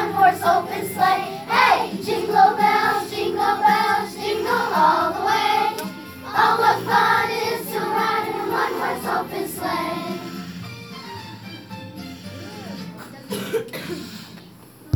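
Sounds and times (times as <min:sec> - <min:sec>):
Christmas song: 0:00.0 - 0:10.5.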